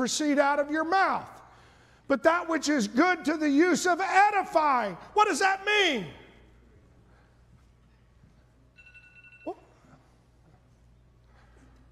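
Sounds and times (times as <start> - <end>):
speech: 0.0 - 1.4, 2.1 - 6.2
mobile phone ringing: 8.8 - 9.8.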